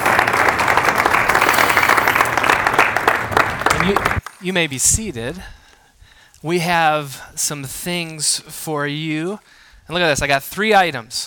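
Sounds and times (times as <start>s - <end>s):
crowd applause: 0.0s - 4.3s
speech: 3.8s - 5.6s, 6.4s - 11.2s.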